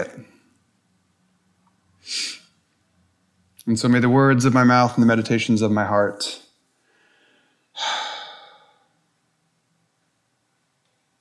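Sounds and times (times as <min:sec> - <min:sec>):
speech: 0:03.7 - 0:06.4
deep breath during a spoken prayer: 0:06.8 - 0:09.0.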